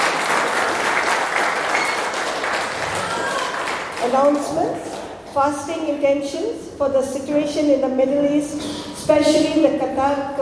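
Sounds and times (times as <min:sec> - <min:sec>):
audience applause: 0:00.0 - 0:04.4
speech: 0:04.1 - 0:10.4.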